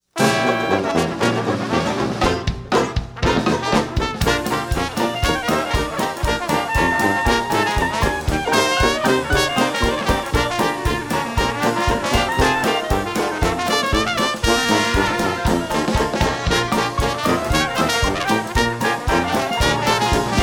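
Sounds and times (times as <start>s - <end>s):
dixieland jazz: 0.1s - 20.4s.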